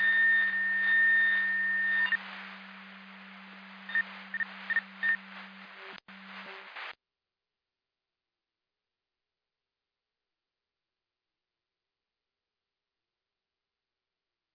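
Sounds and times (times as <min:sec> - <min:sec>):
siren: 0:00.0 - 0:02.2.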